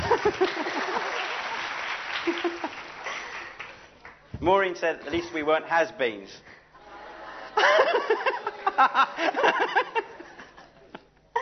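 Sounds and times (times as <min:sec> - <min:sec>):
laughter: 0:00.0 - 0:01.4, 0:02.2 - 0:03.6, 0:06.8 - 0:11.4
audience applause: 0:00.0 - 0:04.2
speech: 0:00.2 - 0:00.7, 0:04.4 - 0:06.5, 0:07.6 - 0:10.2.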